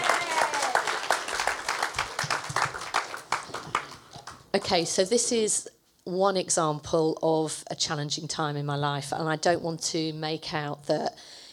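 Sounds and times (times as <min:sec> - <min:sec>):
group applauding: 0:00.0 - 0:04.8
speech: 0:04.5 - 0:11.3.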